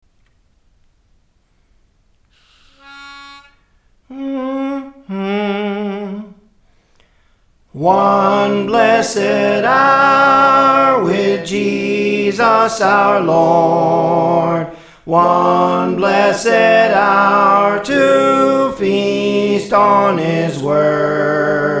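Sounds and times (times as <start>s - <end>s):
soprano singing praise training: 4.1s - 6.5s, 7.8s - 21.7s.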